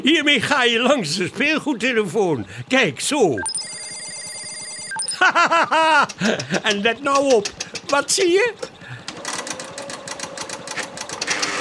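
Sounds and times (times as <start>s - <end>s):
speech: 0.0s - 3.8s, 5.2s - 8.8s
laughter: 5.1s - 7.0s
paper slip rolling out of a machine: 8.6s - 11.6s.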